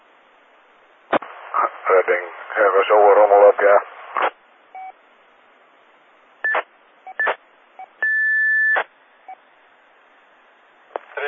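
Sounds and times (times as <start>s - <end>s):
crackly bursts of radio static: 1.1s - 4.5s, 10.9s - 11.2s
speech: 1.6s - 4.4s
short beeps: 6.5s - 9.4s.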